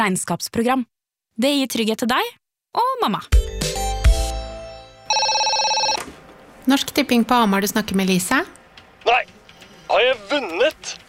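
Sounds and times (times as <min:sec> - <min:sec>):
speech: 0:00.0 - 0:03.5, 0:06.6 - 0:09.3, 0:09.9 - 0:11.0
electronic telephone ringtone before a call to Norsk Tipping is answered: 0:05.1 - 0:06.0.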